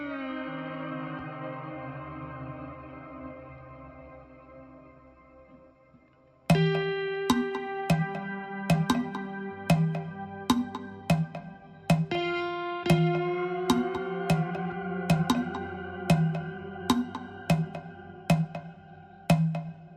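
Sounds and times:
guitar hook: 6.5 - 19.7.

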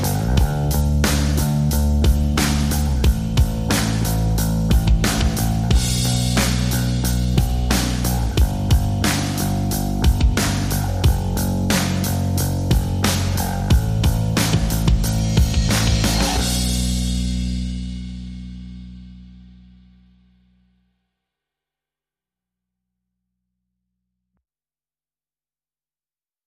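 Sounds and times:
drums: 0.0 - 20.0
bass: 0.0 - 21.0.

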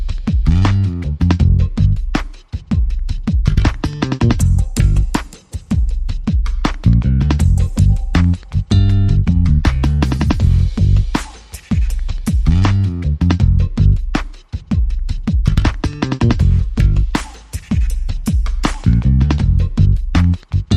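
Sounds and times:
drums: 0.0 - 20.7
bass guitar: 0.5 - 2.1, 3.5 - 5.2, 6.8 - 11.2, 12.5 - 14.1, 15.5 - 17.2, 18.8 - 20.7.

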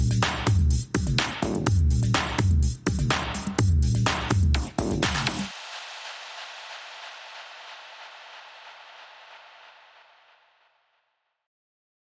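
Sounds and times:
bonus beats: 0.0 - 5.6.

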